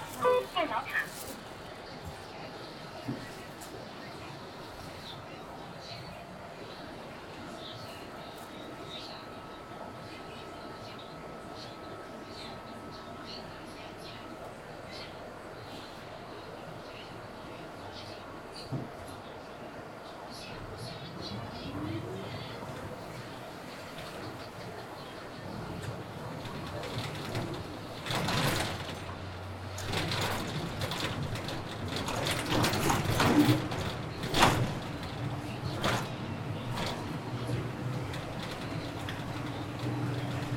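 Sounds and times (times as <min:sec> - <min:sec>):
out-of-town bus on a rainy day: 0:00.0 - 0:40.5.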